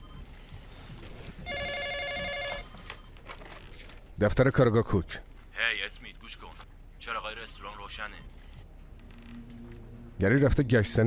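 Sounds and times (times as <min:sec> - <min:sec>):
telephone ringing: 0:01.3 - 0:03.6
low rumbling hiss: 0:04.1 - 0:11.0
speech: 0:04.2 - 0:05.3, 0:10.2 - 0:11.0.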